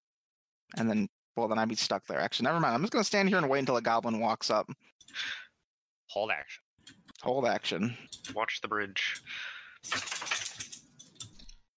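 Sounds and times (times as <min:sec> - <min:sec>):
speech: 0:00.7 - 0:05.5, 0:06.1 - 0:10.5
dog shaking itself with collar tags jangling: 0:09.8 - 0:11.4.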